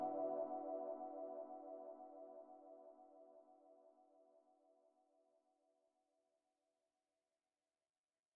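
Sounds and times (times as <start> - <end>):
synthwave music: 0.0 - 1.7.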